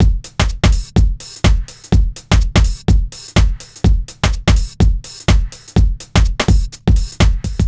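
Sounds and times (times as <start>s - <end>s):
lounge house music loop: 0.0s - 7.6s.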